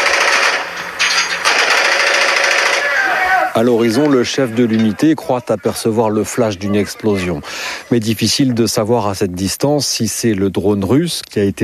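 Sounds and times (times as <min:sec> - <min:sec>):
machine gun fire from a phone video: 0:00.0 - 0:00.8, 0:01.4 - 0:03.0
laughter: 0:03.0 - 0:08.7
speech: 0:03.6 - 0:11.6.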